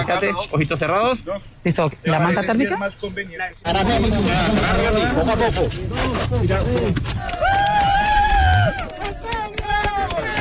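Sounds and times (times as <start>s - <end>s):
speech: 0.0s - 7.5s
scattered claps: 6.5s - 10.4s
rescue teams shouting and cheering: 7.1s - 10.4s.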